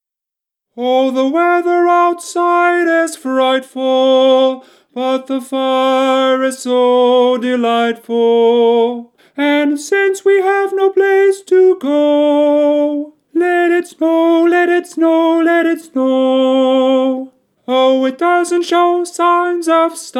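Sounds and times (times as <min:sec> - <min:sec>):
tenor singing: 0:00.7 - 0:20.1.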